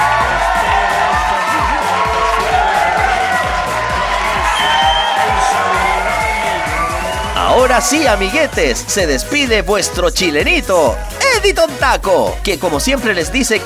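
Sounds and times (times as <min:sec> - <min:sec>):
audience applause: 0:00.0 - 0:08.3
speech: 0:07.7 - 0:13.6.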